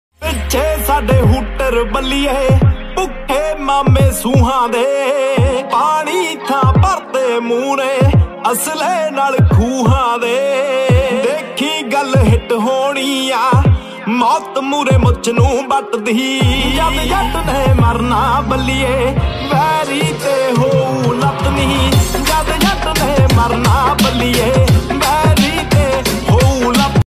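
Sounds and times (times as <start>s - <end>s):
Desi Punjabi ringtone music: 0.2s - 27.0s.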